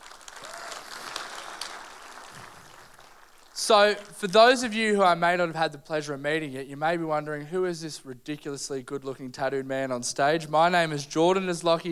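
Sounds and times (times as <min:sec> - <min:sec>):
audience applause: 0:00.0 - 0:04.2
speech: 0:03.6 - 0:11.9.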